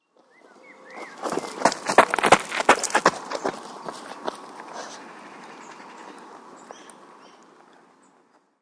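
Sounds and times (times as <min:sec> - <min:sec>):
footsteps running on a gravel path: 0:00.4 - 0:06.8.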